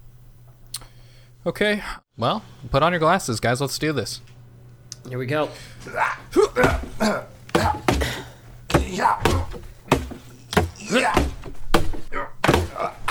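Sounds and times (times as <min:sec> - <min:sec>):
speech: 0:01.4 - 0:04.3, 0:05.0 - 0:07.8, 0:08.9 - 0:09.6, 0:10.9 - 0:11.3
axe chopping a log: 0:07.5 - 0:13.1.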